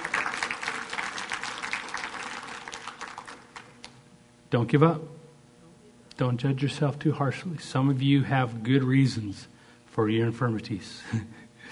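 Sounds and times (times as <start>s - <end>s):
audience applause: 0.0s - 4.0s
speech: 4.5s - 5.2s, 6.2s - 11.4s.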